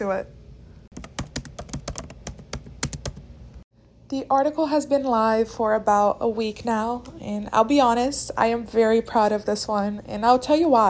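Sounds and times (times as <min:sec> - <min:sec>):
speech: 0:00.0 - 0:00.4, 0:04.1 - 0:10.8
fingers typing on a computer keyboard: 0:00.9 - 0:03.3.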